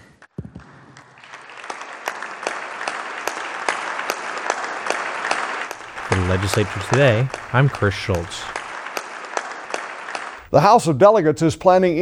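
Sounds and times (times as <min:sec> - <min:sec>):
audience applause: 0:01.0 - 0:10.7
laughter: 0:05.8 - 0:08.7
speech: 0:06.3 - 0:08.6, 0:10.5 - 0:12.0.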